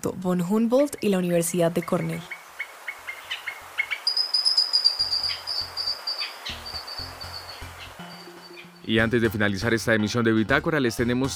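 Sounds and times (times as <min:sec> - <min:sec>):
speech: 0:00.0 - 0:02.4, 0:08.9 - 0:11.3
mountain grackle song: 0:00.4 - 0:09.0.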